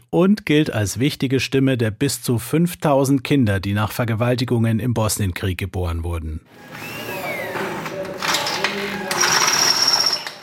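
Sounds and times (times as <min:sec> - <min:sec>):
speech: 0:00.1 - 0:07.2
drilling in a workshop: 0:06.5 - 0:10.4
screwing in a workshop: 0:06.5 - 0:10.4.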